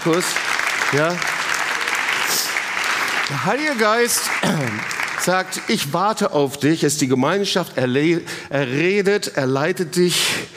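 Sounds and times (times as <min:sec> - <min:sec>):
speech: 0:00.0 - 0:01.4, 0:03.3 - 0:10.5
audience applause: 0:00.0 - 0:06.3.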